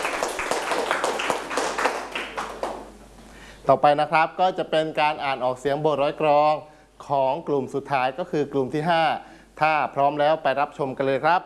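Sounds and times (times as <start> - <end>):
group clapping: 0.0 - 3.0
speech: 3.7 - 11.4.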